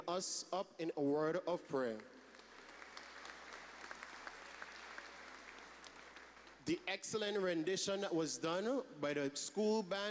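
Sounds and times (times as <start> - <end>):
speech: 0.0 - 2.2, 6.7 - 10.0
audience applause: 2.3 - 6.6.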